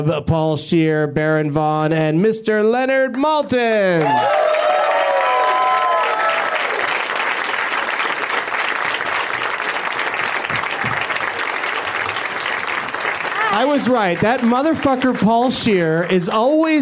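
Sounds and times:
speech: 0:00.0 - 0:04.6, 0:13.6 - 0:16.8
audience applause: 0:04.0 - 0:16.8.

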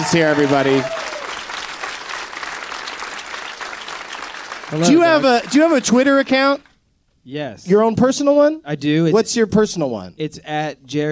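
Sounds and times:
audience applause: 0:00.0 - 0:06.7
speech: 0:00.1 - 0:01.0, 0:04.7 - 0:11.1.

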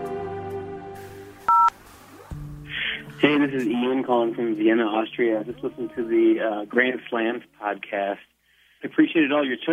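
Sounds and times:
telephone keypad tone: 0:01.5 - 0:01.7
speech: 0:03.4 - 0:09.7.

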